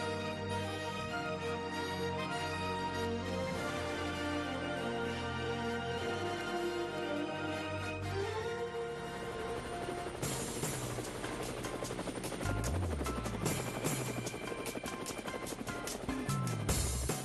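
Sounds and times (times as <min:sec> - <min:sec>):
helicopter sound effect marking a Cuban radio segment: 0:00.0 - 0:17.2.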